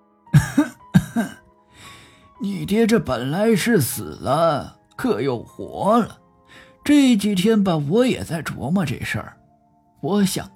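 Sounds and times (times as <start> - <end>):
throaty coughs: 0.4 - 1.4
speech: 0.6 - 1.4, 2.4 - 6.2, 6.9 - 9.4, 10.0 - 10.5.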